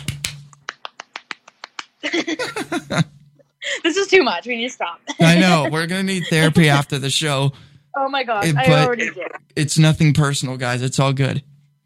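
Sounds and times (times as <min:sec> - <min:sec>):
golf clap, soft light clapping: 0:00.0 - 0:02.0
laughter: 0:02.0 - 0:03.9, 0:05.1 - 0:07.5, 0:08.4 - 0:09.4
speech: 0:02.1 - 0:03.1, 0:03.8 - 0:11.5.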